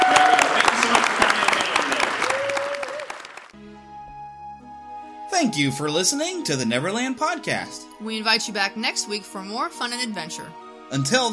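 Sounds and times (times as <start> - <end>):
audience applause: 0.0 - 3.6
speech: 5.4 - 11.3.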